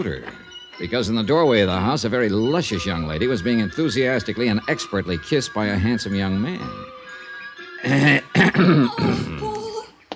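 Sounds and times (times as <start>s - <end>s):
speech: 0.0s - 6.9s, 7.8s - 9.4s
man giving a loud throaty exaggerated cough: 7.9s - 9.5s.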